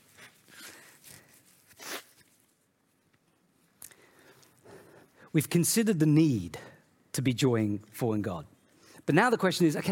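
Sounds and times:
person blowing nose: 0.4 - 2.3
speech: 5.3 - 8.5, 9.1 - 9.9.

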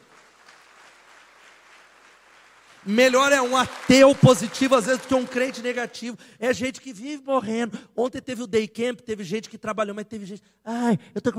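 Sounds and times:
audience applause: 0.0 - 6.0
speech: 2.8 - 11.3.

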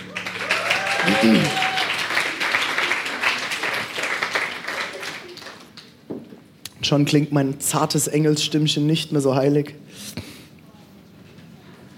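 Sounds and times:
audience applause: 0.0 - 6.0
speech: 1.1 - 1.6, 6.9 - 10.2.

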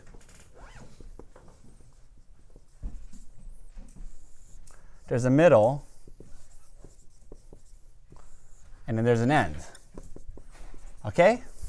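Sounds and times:
writing strokes as notes are jotted down: 0.0 - 11.6
speech: 5.1 - 5.9, 9.0 - 9.8, 11.0 - 11.6.

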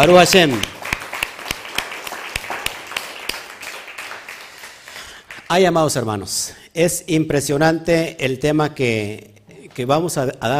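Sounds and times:
speech: 0.0 - 0.7, 5.5 - 10.5
audience applause: 0.0 - 5.5.

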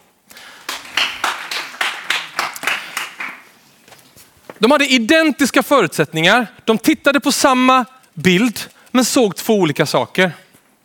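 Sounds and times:
audience applause: 0.4 - 3.5
speech: 4.6 - 10.4.

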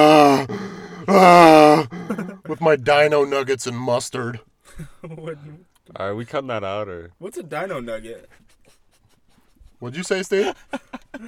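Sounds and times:
person's voice imitating a turtle's groaning: 0.0 - 2.5
speech: 1.0 - 8.5, 9.8 - 11.2.

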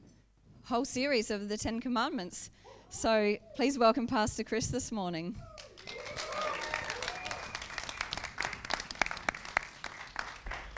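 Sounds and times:
speech: 0.7 - 5.5
audience applause: 5.6 - 10.7.

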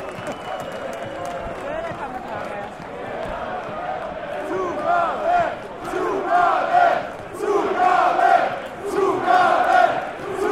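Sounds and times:
constant rumbling crowd murmur: 0.0 - 10.5
football fans chanting and singing: 2.6 - 10.5.

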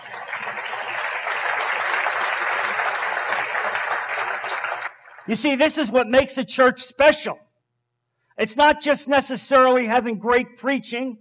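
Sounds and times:
audience applause: 0.0 - 5.3
speech: 5.3 - 7.4, 8.4 - 11.1.

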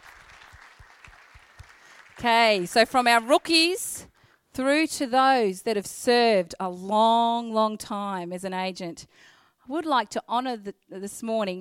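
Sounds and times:
audience applause: 0.0 - 3.4
speech: 2.2 - 4.0, 4.6 - 11.5.

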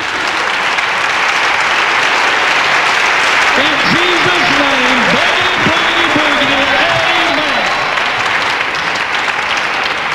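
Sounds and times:
applause: 0.0 - 10.1
laughter: 3.6 - 8.9.

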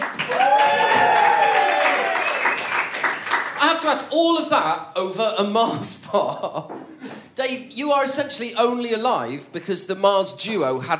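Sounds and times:
audience applause: 0.0 - 3.7
speech: 3.8 - 6.8, 7.4 - 10.9.

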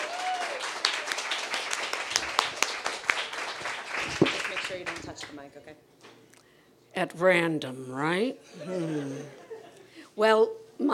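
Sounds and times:
cheers and whoops: 0.0 - 0.8
audience applause: 0.0 - 5.4
speech: 4.2 - 6.1, 7.0 - 9.4, 10.2 - 10.9.

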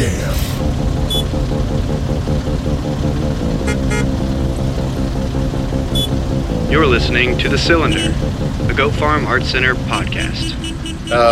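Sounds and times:
steady loud rumble of traffic: 0.0 - 11.2
layered car horns honking as music: 3.6 - 4.2, 5.9 - 11.2
speech: 6.7 - 8.2, 8.8 - 11.2.

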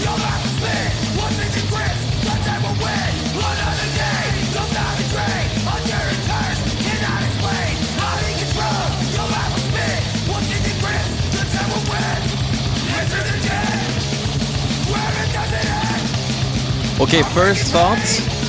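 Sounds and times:
crossover thrash song with hockey-style gang vocals: 0.0 - 16.2, 17.0 - 18.3
speech: 17.1 - 18.3.

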